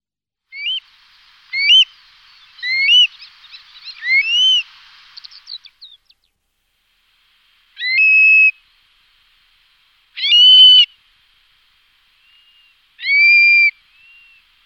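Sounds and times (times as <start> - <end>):
Eurasian stone-curlew shrill whistled calls: 0.5 - 6.2, 7.8 - 8.6, 10.2 - 11.0, 12.2 - 14.5.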